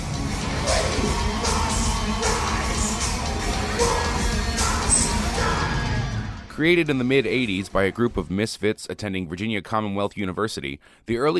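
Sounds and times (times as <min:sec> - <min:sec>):
concert crowd roaring: 0:00.0 - 0:06.5
speech: 0:06.6 - 0:11.3.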